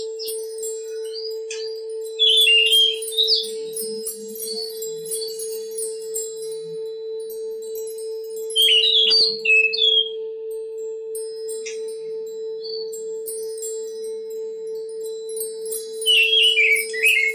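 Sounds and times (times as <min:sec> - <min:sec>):
Oriental magpie-robin song: 0:00.0 - 0:05.5, 0:08.6 - 0:10.3, 0:16.0 - 0:17.3.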